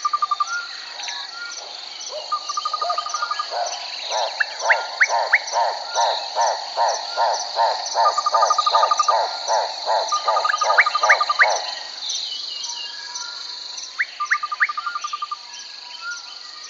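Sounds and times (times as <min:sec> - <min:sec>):
several birds chirping in a forest: 0:00.0 - 0:12.5.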